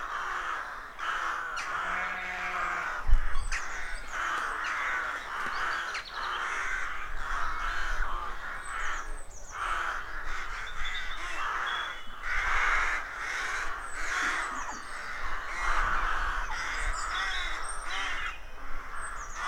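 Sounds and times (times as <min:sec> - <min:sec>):
rooks cawing in a colony: 0:00.0 - 0:19.4
small birds chirping: 0:03.2 - 0:06.9, 0:08.3 - 0:19.4.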